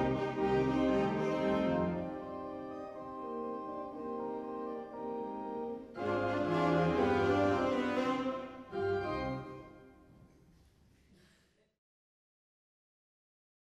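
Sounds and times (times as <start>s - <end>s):
tango music: 0.0s - 10.0s.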